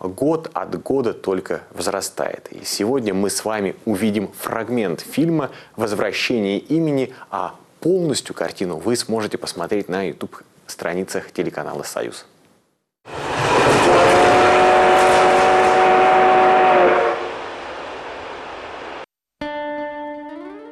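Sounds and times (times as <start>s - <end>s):
speech: 0.0s - 12.3s
high metallic squeal of a train: 13.1s - 16.1s
train rolling into a railway station: 13.1s - 19.0s.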